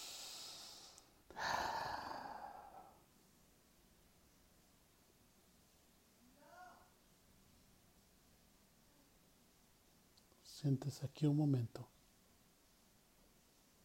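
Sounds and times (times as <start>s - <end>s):
deep breath in through the nose and out through the mouth during a guided prayer: 0.0s - 3.1s
speech: 10.6s - 12.0s.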